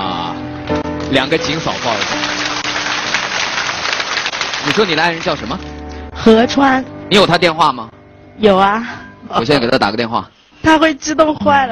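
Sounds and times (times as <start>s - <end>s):
speech: 1.1s - 2.3s, 4.6s - 11.7s
audience applause: 1.3s - 5.7s.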